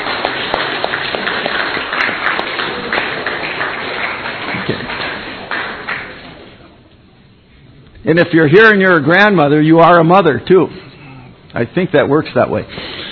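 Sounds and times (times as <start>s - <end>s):
audience applause: 0.0s - 6.6s
speech: 8.1s - 10.8s, 11.6s - 12.8s.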